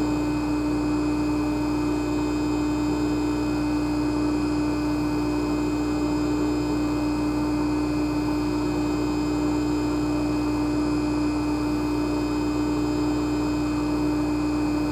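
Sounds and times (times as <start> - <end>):
jacuzzi jets running in a bathroom: 0.0 - 14.9.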